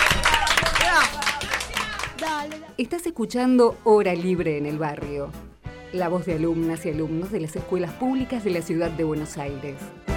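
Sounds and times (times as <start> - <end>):
small group of school students clapping: 0.0 - 2.8
speech: 2.8 - 10.0.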